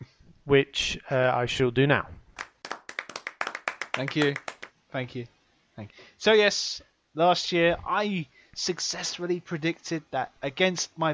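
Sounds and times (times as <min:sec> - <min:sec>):
speech: 0:00.5 - 0:02.2, 0:04.0 - 0:11.1
round of applause: 0:02.4 - 0:04.7.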